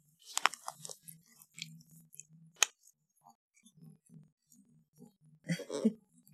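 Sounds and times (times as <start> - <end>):
cat eating its food: 0.4 - 4.6.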